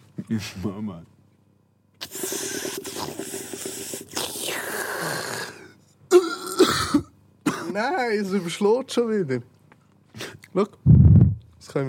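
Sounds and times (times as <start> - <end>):
speech: 0.3 - 1.2, 7.8 - 9.6, 10.6 - 10.9
coughing into a microphone: 6.1 - 7.9.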